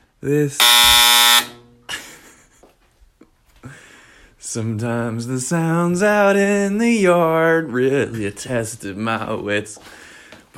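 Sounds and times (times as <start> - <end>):
speech: 0.2 - 0.7, 4.5 - 10.0
clothes dryer buzzer: 0.6 - 1.8.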